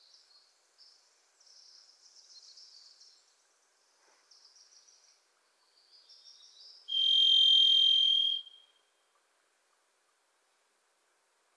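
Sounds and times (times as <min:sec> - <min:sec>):
varied thrush buzzy ringing whistle: 0:06.9 - 0:08.7.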